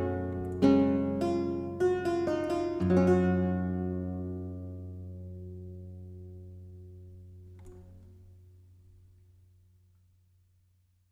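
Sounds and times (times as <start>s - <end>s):
German Lautenwerck lute-harpsichord playing: 0.0s - 5.2s.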